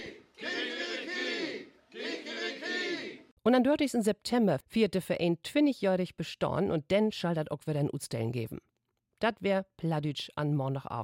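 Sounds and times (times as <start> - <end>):
crowd shouting rooster-crow cheer imitating a cock's call: 0.0 - 3.2
speech: 3.4 - 11.0.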